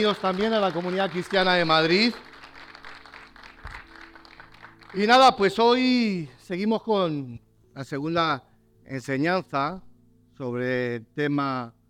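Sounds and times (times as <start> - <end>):
speech: 0.0 - 2.3, 4.9 - 11.8
audience applause: 0.0 - 5.2.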